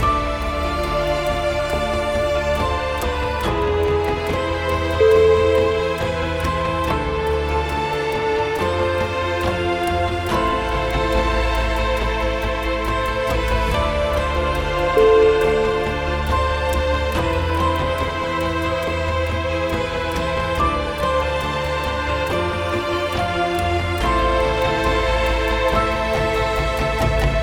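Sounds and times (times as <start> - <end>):
dramatic chamber music: 0.0 - 27.4.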